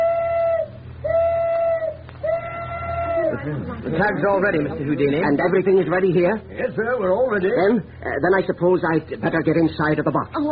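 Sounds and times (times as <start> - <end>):
tugboat steam whistle blowing: 0.0 - 3.4
speech: 3.5 - 10.5.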